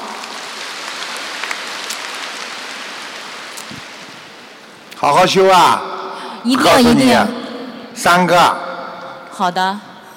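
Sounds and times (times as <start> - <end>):
applause: 0.0 - 4.2
speech: 5.0 - 7.4, 8.0 - 8.6, 9.4 - 9.9.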